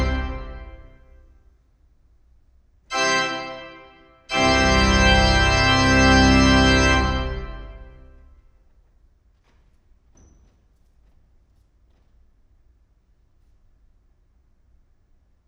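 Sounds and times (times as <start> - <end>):
organ playing: 0.0 - 1.2, 2.9 - 8.3.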